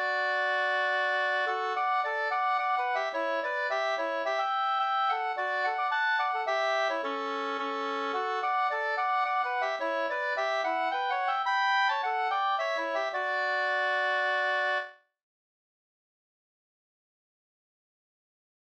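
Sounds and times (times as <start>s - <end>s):
two-part polska folk dance tune: 0.0s - 14.9s.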